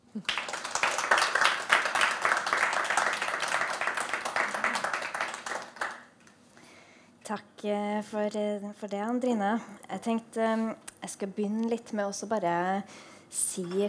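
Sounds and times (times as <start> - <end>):
audience applause: 0.2 - 6.1
speech: 7.3 - 13.8.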